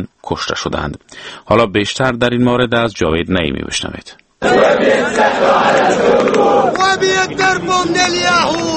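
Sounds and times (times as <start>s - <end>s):
speech: 0.0s - 8.7s
protest crowd of tens of thousands shouting in Tahrir Square, Egypt: 4.4s - 8.7s.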